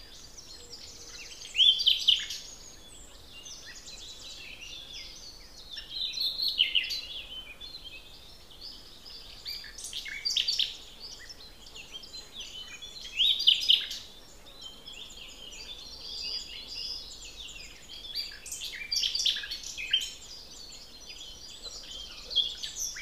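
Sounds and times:
common nightingale singing: 0.0 - 23.0
small birds twittering: 0.0 - 23.0.

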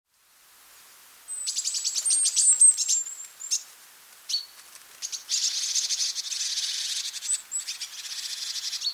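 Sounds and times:
great tit calling: 1.3 - 3.6, 4.3 - 8.9.

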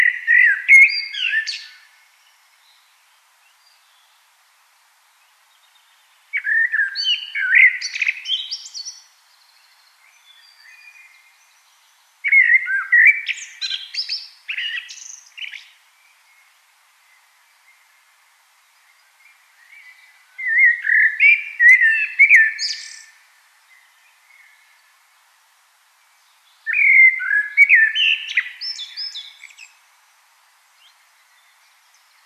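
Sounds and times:
common blackbird song: 0.0 - 1.9, 6.3 - 9.1, 10.0 - 15.8, 19.6 - 24.8, 26.6 - 29.8.

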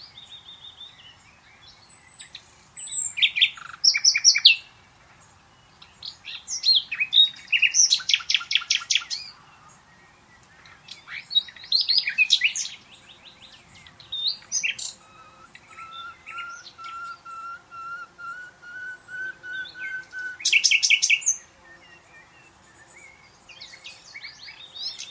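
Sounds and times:
Common nightingale singing: 0.0 - 25.1.

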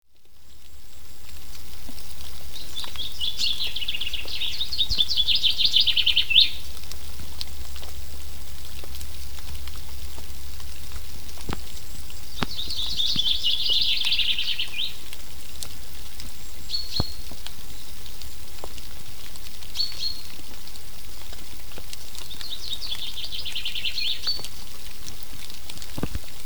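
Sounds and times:
common chaffinch Fringilla coelebs song trill: 2.5 - 6.7, 11.5 - 15.1, 16.4 - 17.9, 19.8 - 20.3, 22.4 - 24.5.

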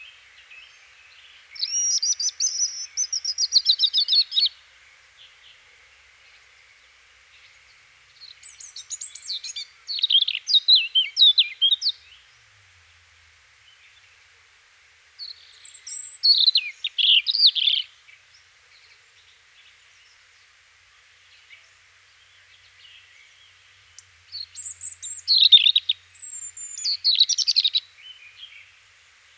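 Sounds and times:
European robin singing: 0.0 - 4.6, 8.2 - 12.3, 15.0 - 19.0, 21.4 - 28.8.

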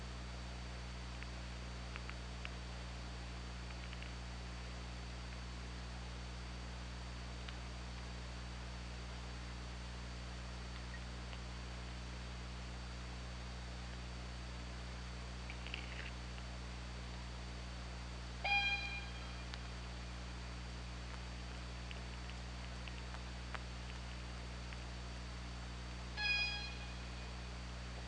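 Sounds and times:
low hum: 0.0 - 28.0
faint clicks: 1.1 - 2.6, 3.6 - 4.2, 7.4 - 7.7, 10.7 - 11.5, 15.4 - 16.5, 21.0 - 25.0
orca call: 18.4 - 19.4, 26.2 - 27.2.

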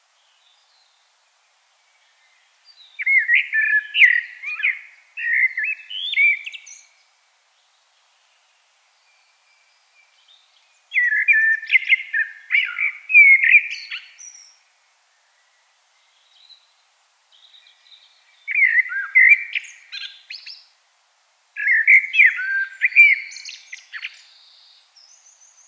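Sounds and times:
common blackbird song: 1.8 - 20.7, 21.6 - 25.6.

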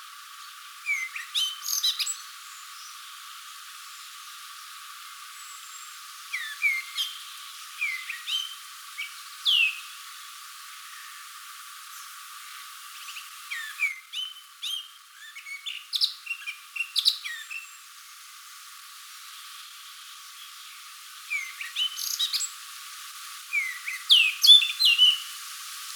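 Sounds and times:
Eurasian blackcap whistled song: 0.8 - 3.0, 5.4 - 10.0, 13.0 - 17.8, 21.3 - 22.5, 23.5 - 25.4.

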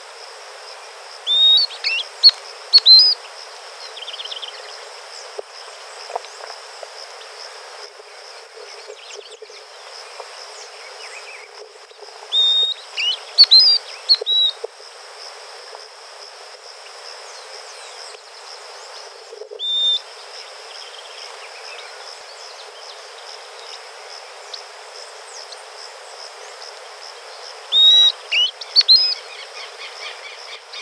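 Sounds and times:
high constant insect-like hum: 0.0 - 30.7
hiss: 0.0 - 30.7
bird whistling: 1.3 - 3.2, 12.3 - 14.6, 19.6 - 20.0, 27.7 - 29.2.

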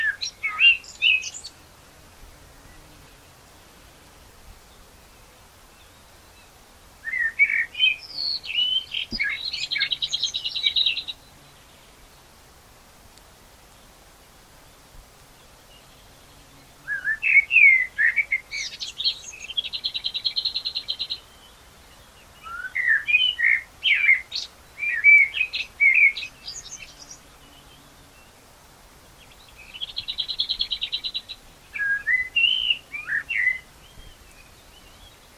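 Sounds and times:
common blackbird singing: 0.0 - 1.7, 4.7 - 12.0, 15.4 - 28.4, 29.2 - 35.3.

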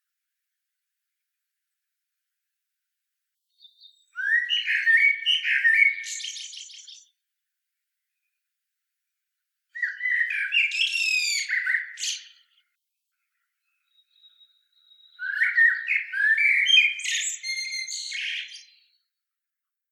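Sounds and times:
common blackbird singing: 3.5 - 7.1, 9.8 - 12.7, 13.6 - 19.1.

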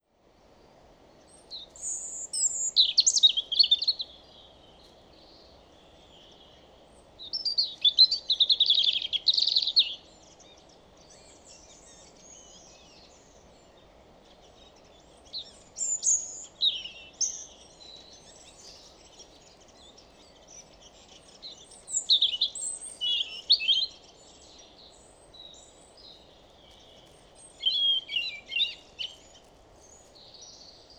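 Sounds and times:
European robin song: 1.1 - 30.9.

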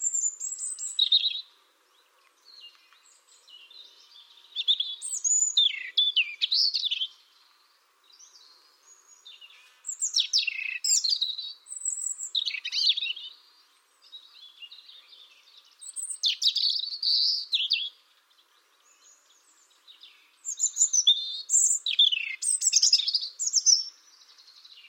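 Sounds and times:
European robin singing: 0.0 - 24.8.

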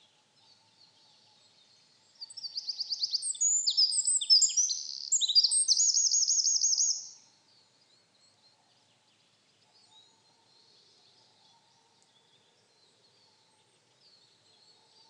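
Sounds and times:
Eurasian wren Troglodytes troglodytes singing: 2.1 - 7.8.

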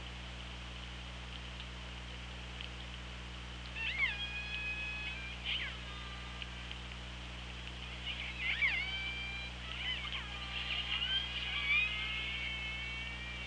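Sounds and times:
underwater hum and hiss: 0.0 - 13.4
killer whale calls: 3.8 - 6.7, 7.9 - 13.4.

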